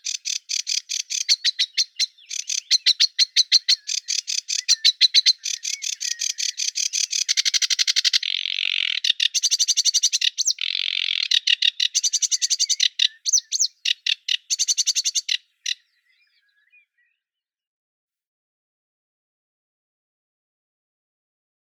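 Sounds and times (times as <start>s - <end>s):
sedge warbler Acrocephalus schoenobaenus singing: 0.0s - 17.3s.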